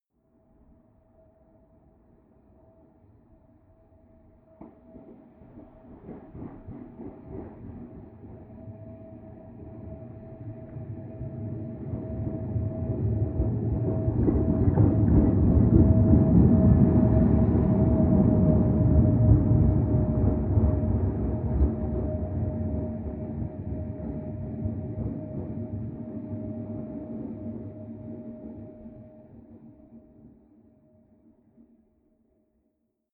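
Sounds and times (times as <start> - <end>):
distant train locomotive driving by: 4.9 - 30.3.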